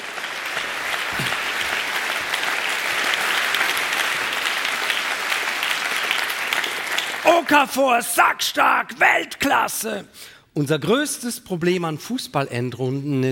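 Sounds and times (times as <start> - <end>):
theater audience applause: 0.0 - 8.0
speech: 7.4 - 13.3.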